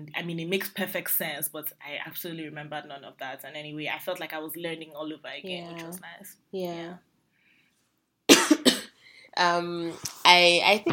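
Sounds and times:
speech: 0.0 - 7.1, 9.4 - 10.9
person coughing: 8.3 - 9.0.

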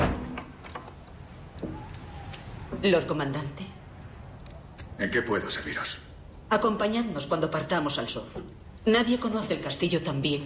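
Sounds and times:
door closing thud: 0.0 - 0.9
speech: 2.8 - 3.6, 5.0 - 10.4.

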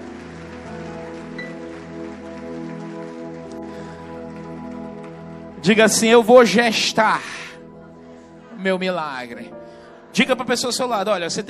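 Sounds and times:
audience applauding loudly: 0.0 - 6.6
sustained keyboard chords: 0.0 - 11.4
speech: 5.6 - 7.5, 8.6 - 9.6, 10.2 - 11.4.

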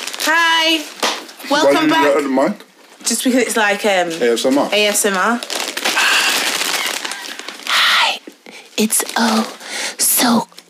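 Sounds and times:
ready salted crisps being munched: 0.0 - 1.4, 4.8 - 10.6
speech: 0.3 - 5.6, 8.8 - 9.6, 10.2 - 10.6.

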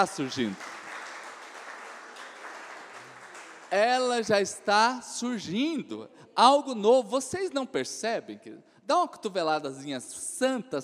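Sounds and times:
speech: 0.0 - 0.7, 3.7 - 10.8
audience applauding: 0.0 - 4.2.

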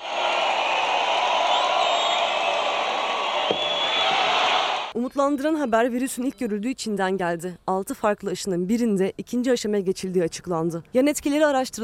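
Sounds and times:
applause and cheering from the stands: 0.0 - 4.9
speech: 5.0 - 11.8.

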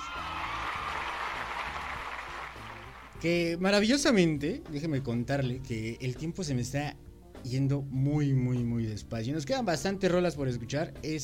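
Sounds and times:
applause: 0.0 - 3.2
speech: 3.2 - 11.2.

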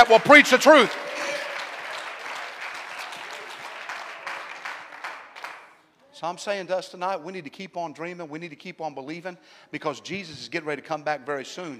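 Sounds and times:
speech: 0.0 - 1.0, 6.2 - 11.7
audience clapping: 0.0 - 5.8.

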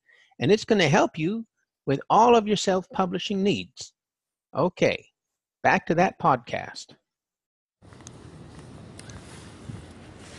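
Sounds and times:
speech: 0.4 - 7.0
wind on a very windy day walk in Germany: 7.8 - 10.3.

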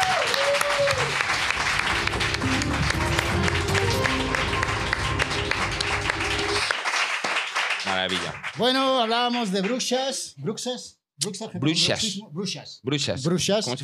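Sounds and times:
applause: 0.0 - 9.9
speech: 8.1 - 13.8.

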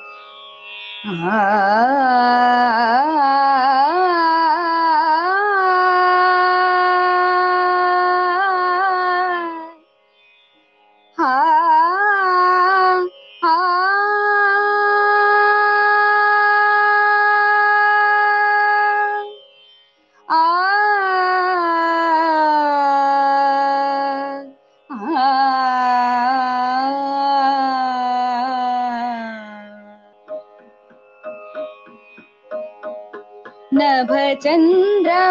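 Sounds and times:
speech: 1.0 - 3.4
woman singing a short khyal in raga Malkauns: 1.1 - 9.8, 11.2 - 19.4, 20.3 - 30.0, 33.7 - 35.2.

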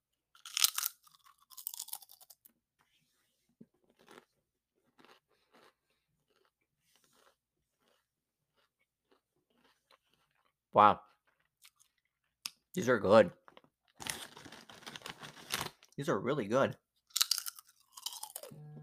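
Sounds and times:
crunching sea salt potato chips: 0.4 - 2.5, 3.8 - 10.6, 13.5 - 16.0, 17.1 - 18.5
speech: 10.8 - 11.0, 12.8 - 13.4, 16.0 - 16.8.

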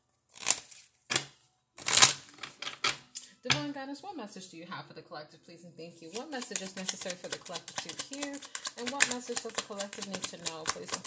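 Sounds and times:
tarot cards being shuffled and pulled: 0.4 - 3.2, 6.0 - 11.0
speech: 3.4 - 11.0.

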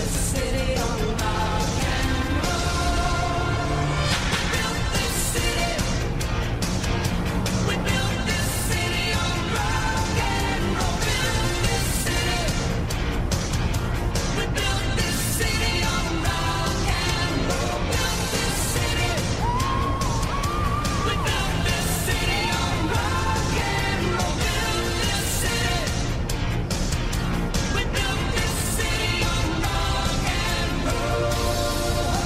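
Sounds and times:
car radio playing music: 0.0 - 32.2
constant low vehicle engine rumble: 0.0 - 32.2.

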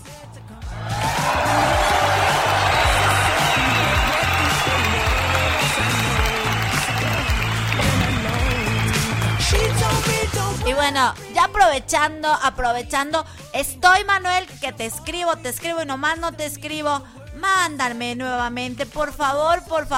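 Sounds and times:
audience applause: 0.8 - 10.6
speech: 11.0 - 19.9.

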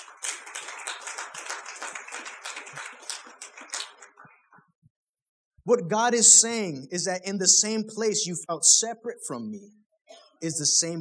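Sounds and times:
audience clapping: 0.0 - 4.7
speech: 5.7 - 9.8, 10.4 - 10.9.

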